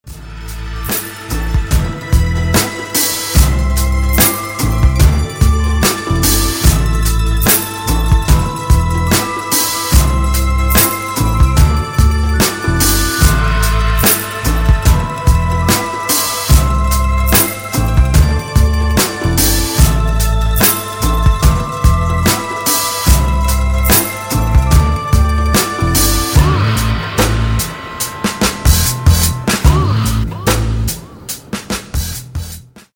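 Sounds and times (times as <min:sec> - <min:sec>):
instrumental music: 0:00.1 - 0:32.9.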